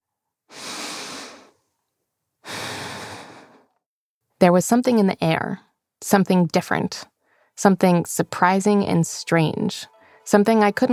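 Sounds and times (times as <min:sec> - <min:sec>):
person breathing slowly in and out: 0:00.5 - 0:01.6, 0:02.4 - 0:03.8, 0:07.2 - 0:07.6
speech: 0:04.4 - 0:10.9.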